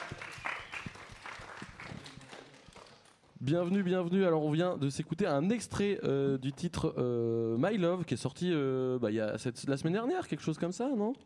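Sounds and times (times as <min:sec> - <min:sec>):
audience applauding guests: 0:00.0 - 0:03.2
speech: 0:03.4 - 0:11.2.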